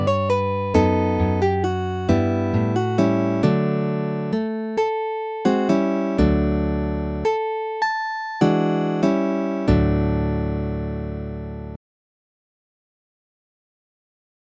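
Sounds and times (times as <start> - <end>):
traditional Spanish guitar music: 0.0 - 7.8, 8.4 - 10.7.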